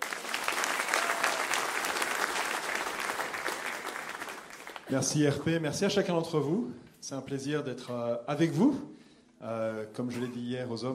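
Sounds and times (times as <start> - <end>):
audience applause: 0.0 - 5.1
speech: 4.9 - 10.9.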